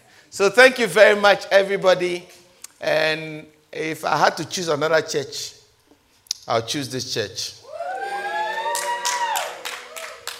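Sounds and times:
speech: 0.3 - 5.6, 6.4 - 7.6
few people clapping: 7.8 - 10.3.

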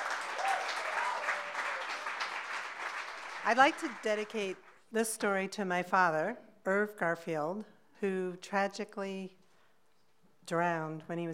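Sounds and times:
audience applause: 0.0 - 4.7
speech: 3.4 - 9.4, 10.5 - 11.3.

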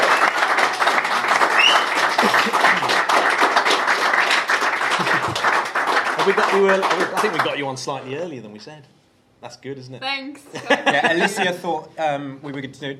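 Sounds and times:
audience applause: 0.0 - 7.7
laughter: 2.0 - 3.1, 4.8 - 5.6, 10.5 - 11.7
speech: 6.3 - 12.9.

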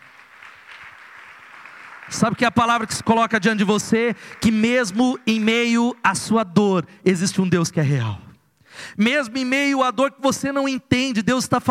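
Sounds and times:
audience applause: 0.0 - 5.3
speech: 2.1 - 11.6.

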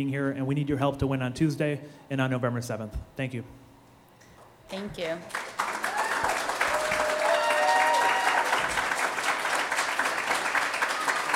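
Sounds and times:
speech: 0.0 - 3.6, 4.7 - 5.5
crowd applauding: 5.3 - 11.3
faint voices and cheers: 5.8 - 8.8.

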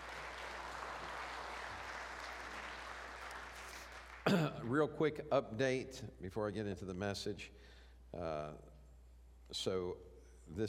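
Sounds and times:
audience hand clapping: 0.0 - 4.8
speech: 4.2 - 8.7, 9.5 - 10.6.

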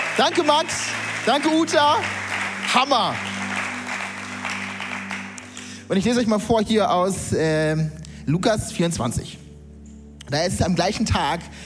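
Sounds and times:
crowd applause: 0.0 - 5.8
speech: 0.2 - 3.3, 5.9 - 9.4, 10.3 - 11.6.

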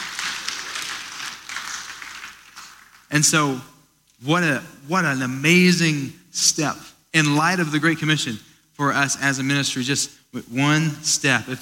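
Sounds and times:
audience clapping: 0.0 - 3.1
speech: 3.1 - 11.6.

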